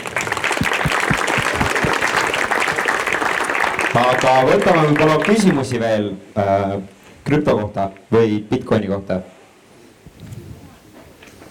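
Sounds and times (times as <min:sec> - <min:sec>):
audience applause: 0:00.0 - 0:05.8
speech: 0:03.9 - 0:09.3.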